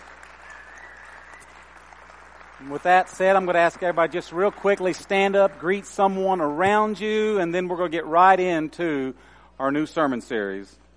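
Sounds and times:
crowd applauding: 0.0s - 6.5s
speech: 2.6s - 10.8s.

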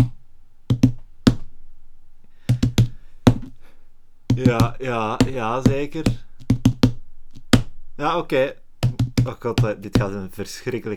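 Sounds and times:
Morse code message knocked on a hard surface: 0.0s - 1.5s, 2.5s - 3.6s, 4.3s - 8.1s, 8.8s - 10.3s
speech: 4.4s - 6.3s, 8.0s - 8.6s, 9.2s - 10.9s.

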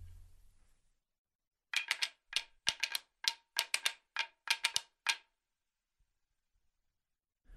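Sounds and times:
percussion clappers struck together: 1.7s - 5.2s.

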